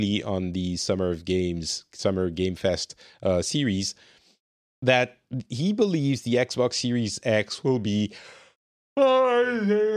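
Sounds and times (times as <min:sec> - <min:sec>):
speech: 0:00.0 - 0:04.2, 0:04.8 - 0:08.4, 0:09.0 - 0:09.9
yawning: 0:09.0 - 0:09.9.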